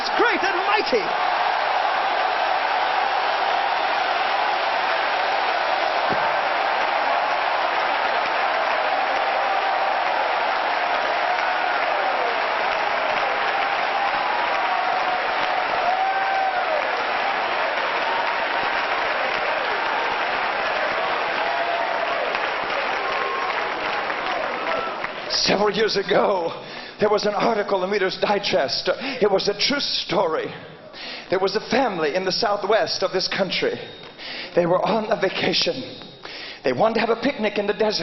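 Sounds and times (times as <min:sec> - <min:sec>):
people shouting and cheering: 0:00.0 - 0:25.3
audience clapping: 0:00.0 - 0:25.7
speech: 0:00.9 - 0:01.3, 0:25.7 - 0:30.7, 0:31.3 - 0:36.0, 0:36.6 - 0:38.0.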